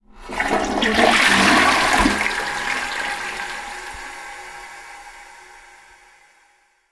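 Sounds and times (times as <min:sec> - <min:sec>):
toilet: 0:00.0 - 0:05.7.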